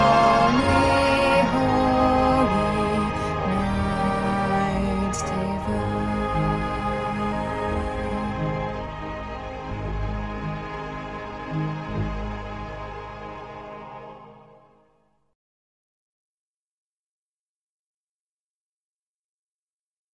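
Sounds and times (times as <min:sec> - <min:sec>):
tenor voice singing bottom part: 0:00.0 - 0:14.5.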